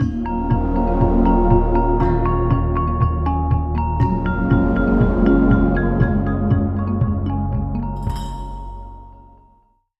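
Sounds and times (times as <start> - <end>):
drums: 0.0 - 8.8.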